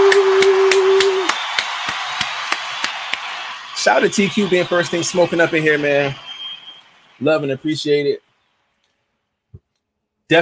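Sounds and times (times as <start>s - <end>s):
applause sound effect: 0.0s - 8.2s
speech: 3.8s - 6.2s, 7.2s - 8.2s.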